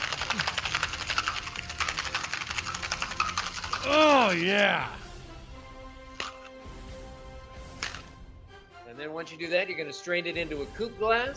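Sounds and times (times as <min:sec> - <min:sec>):
cocktail shaker with ice being shaken: 0:00.0 - 0:04.1
speech: 0:03.8 - 0:05.0, 0:09.1 - 0:11.3.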